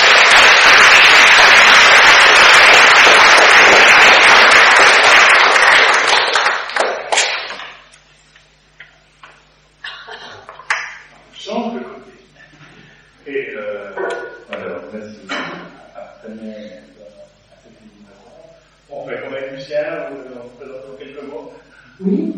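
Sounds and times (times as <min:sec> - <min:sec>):
audience applause at the close of a talk: 0:00.0 - 0:07.8
scattered claps and taps: 0:00.0 - 0:07.8, 0:10.4 - 0:11.1.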